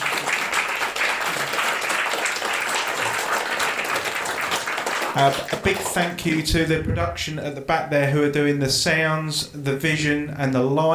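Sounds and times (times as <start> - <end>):
audience applause: 0.0 - 6.4
speech: 5.2 - 10.9.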